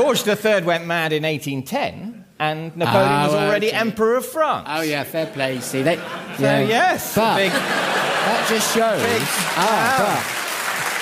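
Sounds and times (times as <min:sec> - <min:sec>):
speech: 0:00.0 - 0:10.4
laughter: 0:04.9 - 0:10.9
people clapping: 0:07.8 - 0:10.9.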